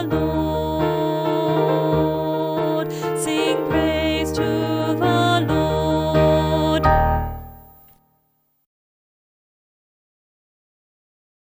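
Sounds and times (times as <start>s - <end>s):
alto voice singing alleluia: 0.0s - 8.0s.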